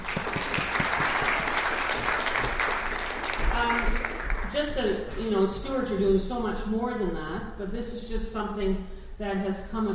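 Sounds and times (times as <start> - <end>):
audience applause: 0.0 - 4.5
speech: 4.6 - 9.9.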